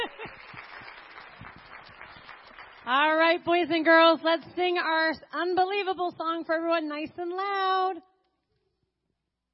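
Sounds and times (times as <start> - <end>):
audience clapping for preschoolers: 0.0 - 3.6
speech: 2.9 - 8.1.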